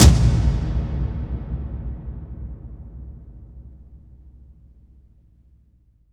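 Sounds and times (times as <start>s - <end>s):
cinematic tom drum impact: 0.0s - 4.1s.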